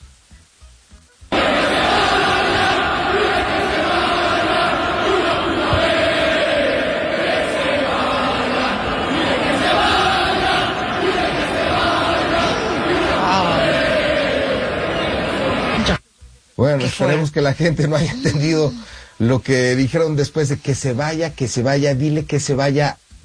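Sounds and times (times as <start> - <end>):
large stadium crowd roaring and shouting at a player: 1.3 - 16.0
speech: 16.8 - 23.2.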